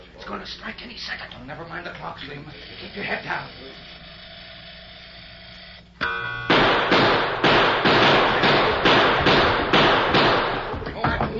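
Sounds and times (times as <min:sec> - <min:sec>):
speech: 0:00.4 - 0:04.0
ringing tone: 0:06.0 - 0:06.6
gunshots in a gunfight: 0:06.5 - 0:10.8.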